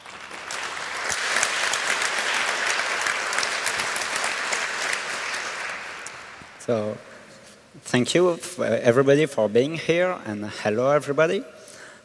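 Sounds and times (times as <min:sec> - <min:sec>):
audience applause: 0:00.0 - 0:06.6
speech: 0:06.7 - 0:07.1, 0:07.8 - 0:11.6.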